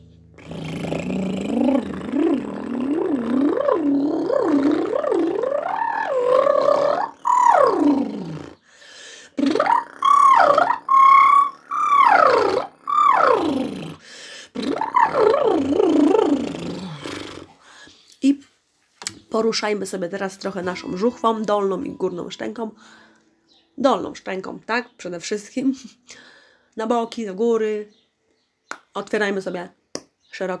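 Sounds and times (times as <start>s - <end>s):
voice gurgling in a relaxation exercise: 0.4s - 8.6s, 9.3s - 17.5s, 20.5s - 22.8s
vocal glides: 0.4s - 17.5s, 20.5s - 23.2s
speech: 19.4s - 23.1s, 23.8s - 28.0s, 29.0s - 29.8s, 30.4s - 30.5s.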